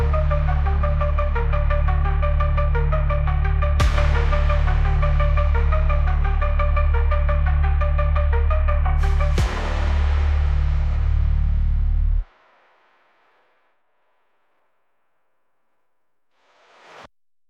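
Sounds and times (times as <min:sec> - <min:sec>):
epic synthwave combat music: 0:00.0 - 0:12.3.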